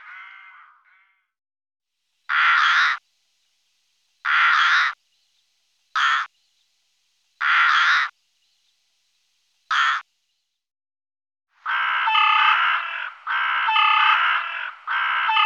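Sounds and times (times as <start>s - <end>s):
rook chorus of many harsh overlapping caws: 2.3s - 3.0s, 4.2s - 5.0s, 6.0s - 6.3s, 7.4s - 8.2s, 9.7s - 10.0s, 11.6s - 15.4s.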